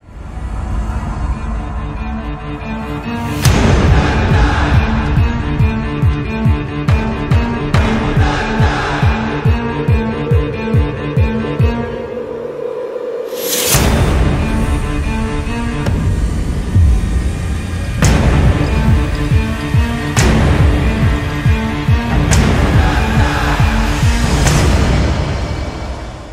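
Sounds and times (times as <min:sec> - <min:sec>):
orchestral theme trailer music: 0:00.0 - 0:26.3.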